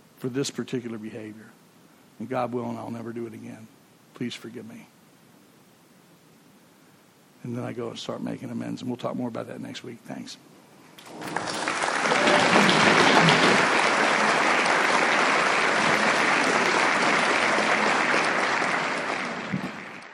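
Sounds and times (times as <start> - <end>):
speech: 0.2 - 1.6, 2.2 - 4.9, 7.4 - 11.5
audience applause: 11.0 - 20.1.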